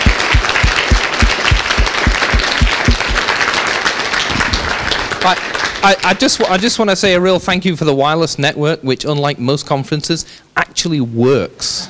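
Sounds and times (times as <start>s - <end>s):
rhythmic thumping: 0.0s - 3.5s
crowd applause: 0.0s - 6.6s
speech: 5.2s - 11.8s.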